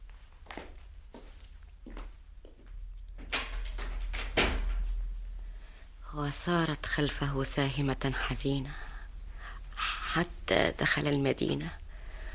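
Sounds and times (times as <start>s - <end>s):
door closing: 3.2s - 5.0s
speech: 6.2s - 8.9s, 10.1s - 11.8s.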